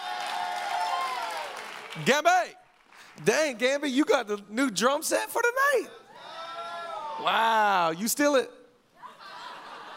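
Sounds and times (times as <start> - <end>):
audience clapping for the band: 0.0 - 3.9
speech: 2.0 - 2.6, 3.2 - 6.0, 7.2 - 8.6
laughter: 9.0 - 9.9.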